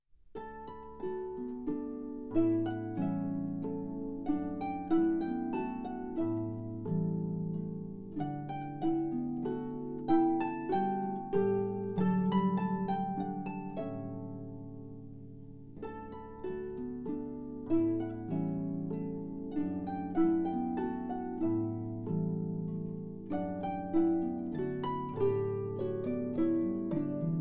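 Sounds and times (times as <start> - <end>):
harp: 0.2 - 27.4.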